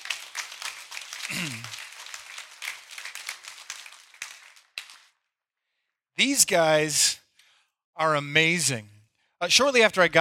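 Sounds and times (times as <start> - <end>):
audience clapping and cheering: 0.0 - 5.2
speech: 6.2 - 7.2, 8.0 - 10.2.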